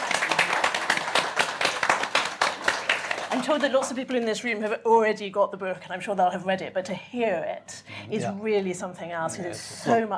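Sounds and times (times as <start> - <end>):
audience clapping: 0.0 - 4.3
speech: 3.4 - 10.1.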